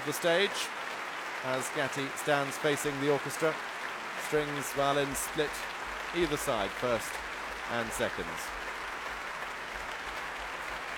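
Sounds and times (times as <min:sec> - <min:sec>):
speech: 0:00.0 - 0:03.7, 0:04.3 - 0:08.5
audience applause for an orchestra after a concert: 0:00.0 - 0:10.9.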